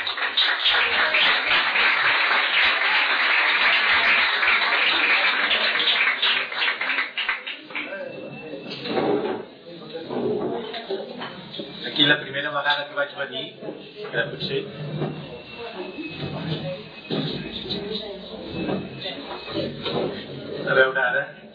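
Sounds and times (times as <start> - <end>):
audience applause: 0.0 - 8.0
scattered voices and murmurs: 0.0 - 21.5
speech: 12.1 - 15.3.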